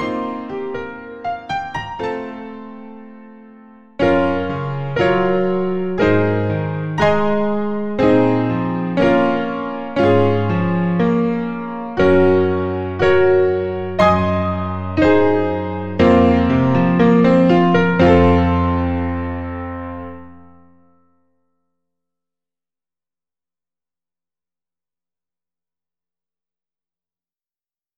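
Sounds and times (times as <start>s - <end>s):
piano: 0.0s - 21.6s.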